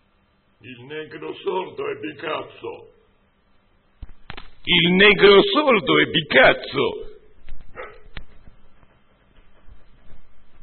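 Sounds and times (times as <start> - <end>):
speech: 0.6 - 3.0, 4.7 - 7.1
dog barking: 7.7 - 8.2.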